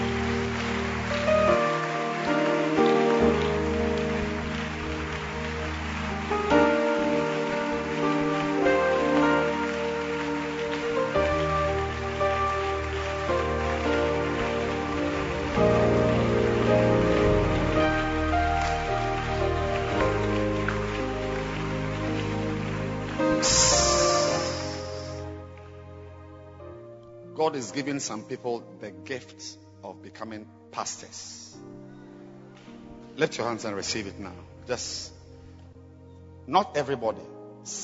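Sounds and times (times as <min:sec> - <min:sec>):
people clapping: 0:00.0 - 0:25.7
speech: 0:27.5 - 0:31.7, 0:33.2 - 0:35.2, 0:36.5 - 0:37.8.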